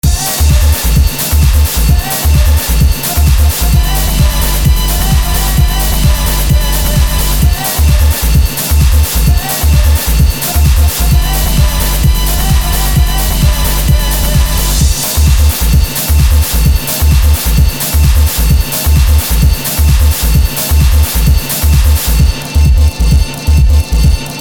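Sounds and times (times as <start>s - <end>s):
disco music: 0.0s - 24.3s.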